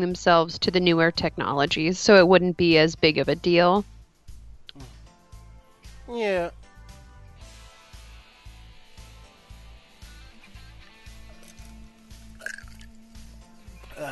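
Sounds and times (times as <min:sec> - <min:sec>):
speech: 0:00.0 - 0:03.9, 0:06.1 - 0:06.6
person gulping a drink: 0:12.4 - 0:12.9.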